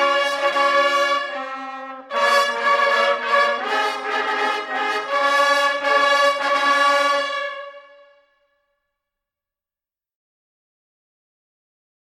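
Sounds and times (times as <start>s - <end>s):
national anthem: 0.0s - 8.4s.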